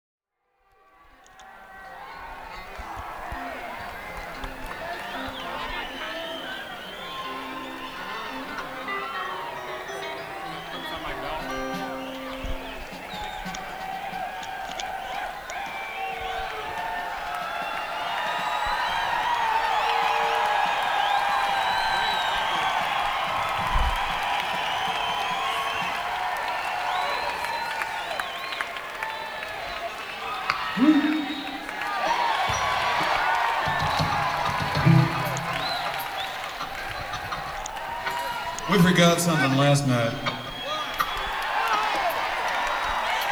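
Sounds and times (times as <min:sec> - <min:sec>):
crowd: 0:00.6 - 0:43.3
laughter: 0:01.2 - 0:43.3.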